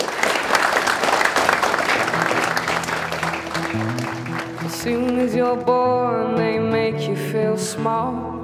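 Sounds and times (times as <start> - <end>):
audience applause: 0.0 - 5.3
speech: 4.8 - 8.3.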